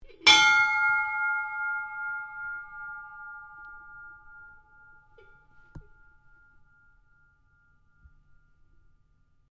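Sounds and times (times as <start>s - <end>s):
ship's bell ringing on a dumb hopper barge: 0.2s - 9.5s.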